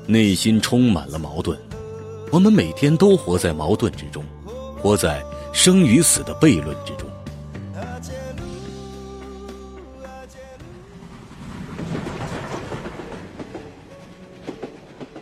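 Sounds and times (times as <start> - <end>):
speech: 0.1 - 1.7, 2.3 - 7.1
train rolling along rails: 10.6 - 15.2.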